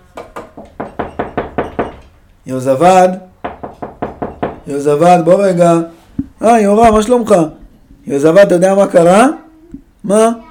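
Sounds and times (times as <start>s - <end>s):
knocking on a door: 0.2s - 2.1s, 3.4s - 4.7s
speech: 2.5s - 3.3s, 4.7s - 9.4s, 10.0s - 10.4s.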